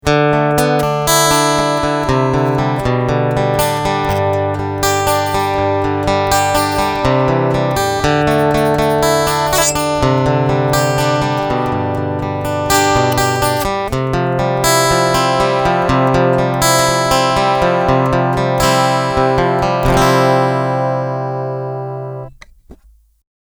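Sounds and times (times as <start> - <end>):
string picking: 0.6 - 23.1.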